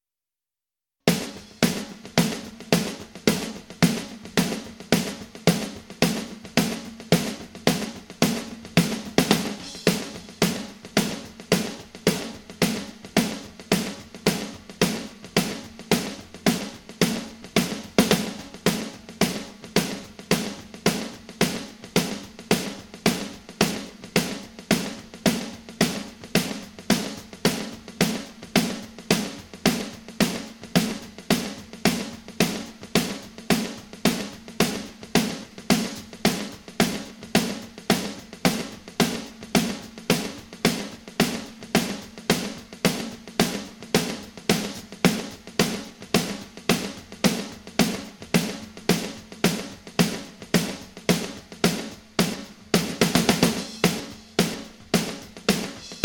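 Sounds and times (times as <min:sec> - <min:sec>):
drums: 0:01.0 - 0:56.0.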